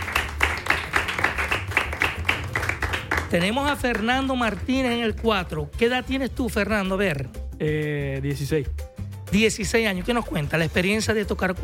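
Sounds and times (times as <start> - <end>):
small group clapping for instrumental musicians at a religious celebration: 0.0 - 5.6
speech: 3.3 - 11.6.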